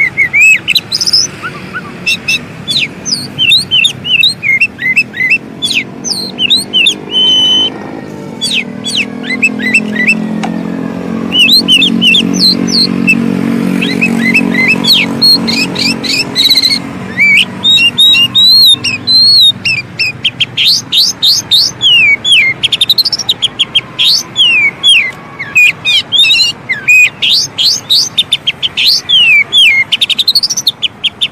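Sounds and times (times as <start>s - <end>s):
Oriental magpie-robin singing: 0.0s - 31.3s.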